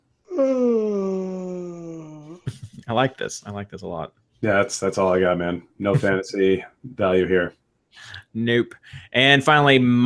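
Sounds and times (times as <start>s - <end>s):
person yawning: 0.3s - 2.4s
speech: 2.9s - 10.0s.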